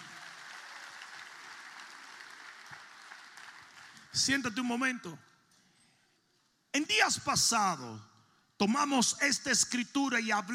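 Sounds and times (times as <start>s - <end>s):
audience applause: 0.0s - 4.0s
speech: 4.2s - 5.3s, 6.9s - 10.5s.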